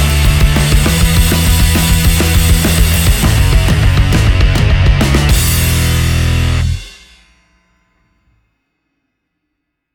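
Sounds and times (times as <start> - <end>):
musical riffs: 0.0 - 7.8.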